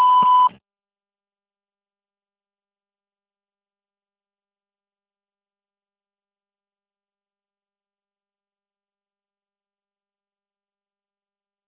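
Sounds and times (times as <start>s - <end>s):
answering machine beep: 0.0s - 0.6s.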